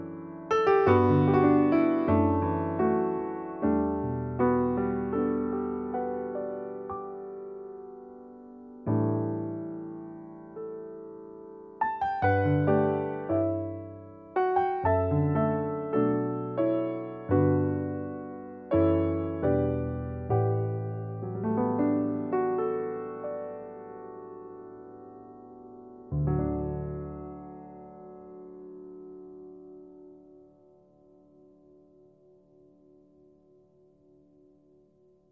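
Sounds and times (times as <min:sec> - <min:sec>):
concert grand piano: 0:00.0 - 0:35.3.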